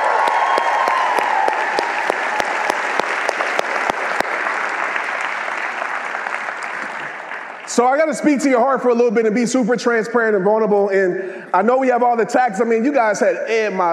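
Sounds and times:
audience applause: 0:00.0 - 0:08.2
speech: 0:07.8 - 0:13.9.

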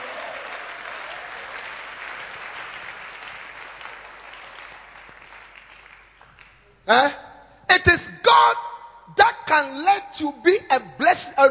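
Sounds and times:
audience clapping hands: 0:00.0 - 0:06.7
speech: 0:06.9 - 0:08.6, 0:09.2 - 0:11.4.

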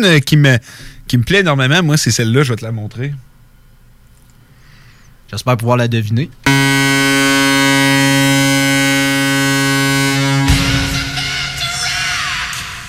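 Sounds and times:
speech: 0:00.0 - 0:03.3, 0:05.3 - 0:06.9
hockey goal horn blaring: 0:06.5 - 0:11.7.

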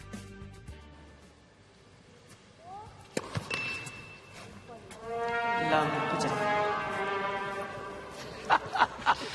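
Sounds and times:
slide trombone playing sad cartoon tune: 0:05.0 - 0:08.2
laughter: 0:08.2 - 0:09.3.

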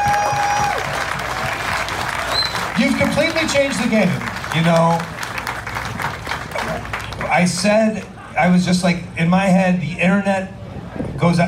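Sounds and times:
audience round of applause: 0:00.0 - 0:08.2
speech: 0:02.8 - 0:05.2, 0:07.4 - 0:10.6, 0:11.2 - 0:11.4.

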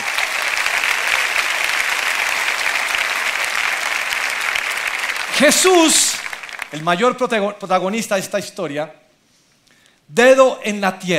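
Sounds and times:
audience applauding loudly: 0:00.0 - 0:07.3
speech: 0:05.4 - 0:09.0, 0:10.1 - 0:11.1.

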